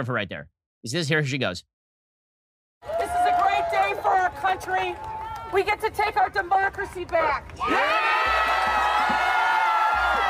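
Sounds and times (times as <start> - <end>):
speech: 0.0 - 1.7, 3.9 - 8.4
crowd roar at a big street rally: 2.8 - 5.6, 7.6 - 10.2.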